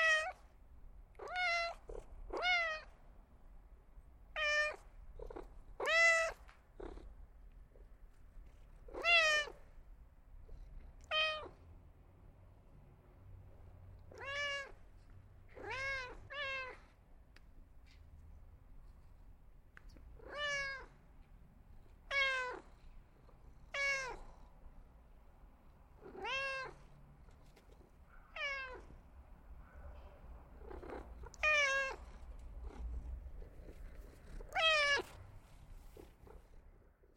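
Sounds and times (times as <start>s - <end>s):
cat meowing: 0.0s - 0.4s, 1.2s - 2.9s, 4.3s - 4.9s, 5.8s - 6.5s, 8.9s - 9.6s, 11.0s - 11.6s, 14.1s - 14.8s, 15.5s - 16.9s, 20.2s - 21.0s, 22.0s - 22.7s, 23.7s - 24.3s, 26.0s - 26.9s, 28.2s - 29.0s, 30.6s - 32.8s, 34.4s - 35.2s.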